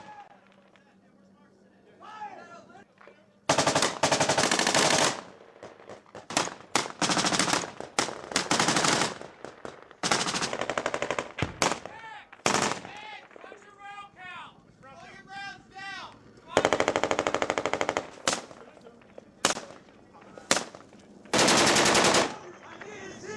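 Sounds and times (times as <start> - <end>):
marines in firefight gunbattle: 3.5 - 13.6, 16.6 - 18.8, 19.4 - 22.5.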